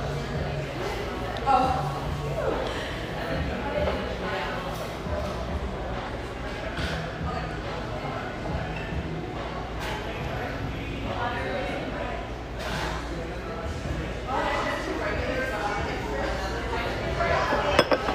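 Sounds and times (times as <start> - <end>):
murmur of overlapping voices in a busy café: 0.0 - 18.1
dishes or cups clattering: 17.4 - 18.1.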